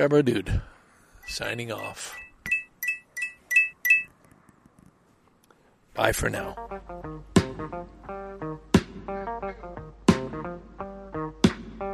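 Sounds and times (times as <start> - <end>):
speech: 0.0 - 0.7, 1.3 - 2.2, 6.0 - 9.2
coins clinking: 1.3 - 4.1.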